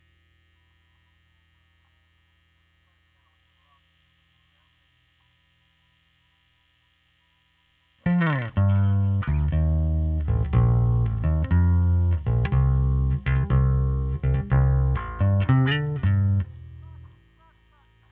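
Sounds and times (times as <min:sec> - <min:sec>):
overdriven bass: 0:08.1 - 0:17.4.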